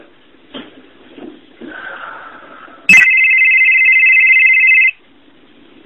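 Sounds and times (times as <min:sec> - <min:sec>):
cell phone ringing: 0:02.9 - 0:05.0.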